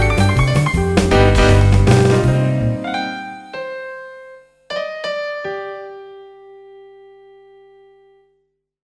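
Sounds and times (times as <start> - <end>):
jazz jam: 0.0 - 4.2.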